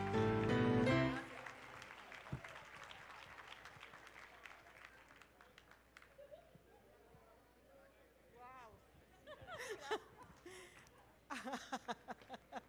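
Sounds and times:
audience applause: 0.0s - 6.2s
laughter: 6.0s - 6.9s, 9.1s - 10.7s, 11.3s - 12.6s.

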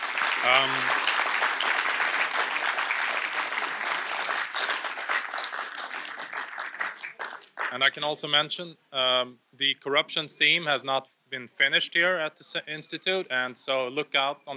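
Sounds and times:
round of applause: 0.0s - 7.8s
speech: 0.4s - 3.6s, 7.7s - 14.5s.

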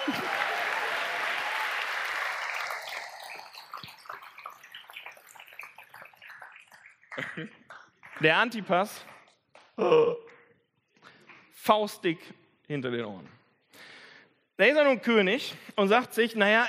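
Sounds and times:
crowd applauding: 0.0s - 9.2s
speech: 7.3s - 7.6s, 8.2s - 9.1s, 9.8s - 10.2s, 11.7s - 13.4s, 14.6s - 16.6s.

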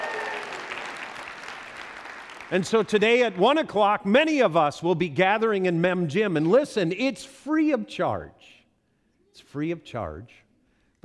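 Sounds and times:
crowd cheering and whooping: 0.0s - 1.0s
crowd applauding: 0.0s - 3.4s
speech: 2.5s - 8.6s, 9.4s - 10.4s.

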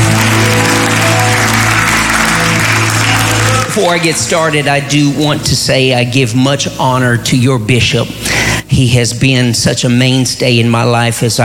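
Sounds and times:
audience clapping: 0.0s - 5.3s
speech: 3.8s - 11.4s.

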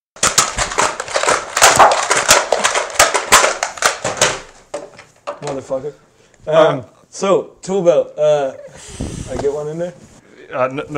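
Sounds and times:
hammering: 0.2s - 5.6s
speech: 5.4s - 10.9s.

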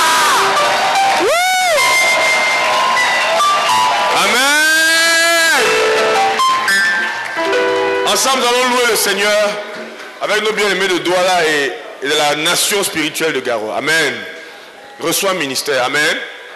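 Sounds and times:
audience cheering and shouting with joy: 0.0s - 8.2s
speech: 8.2s - 14.4s, 15.0s - 16.4s.

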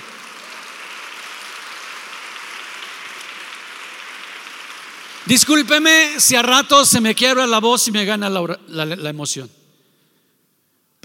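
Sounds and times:
loud audience applause: 0.0s - 5.4s
speech: 5.2s - 9.6s.

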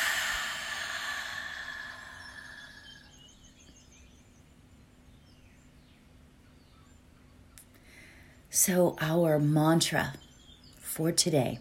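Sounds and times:
deep breath in through the nose and out: 0.0s - 3.2s
speech: 8.6s - 10.2s, 11.0s - 11.6s.

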